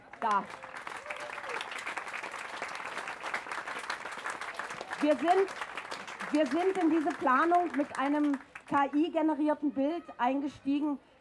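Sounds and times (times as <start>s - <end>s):
audience applause: 0.0s - 8.7s
speech: 0.2s - 0.7s, 5.0s - 5.6s, 6.3s - 11.1s.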